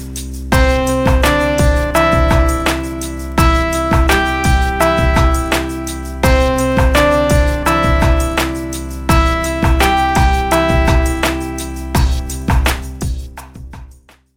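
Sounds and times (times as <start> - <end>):
simple melodies in C major: 0.5 - 13.2.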